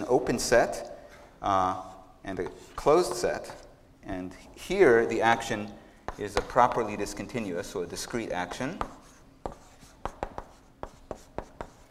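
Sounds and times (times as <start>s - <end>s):
speech: 0.1s - 9.0s
writing on a board: 6.1s - 6.9s, 8.7s - 11.8s.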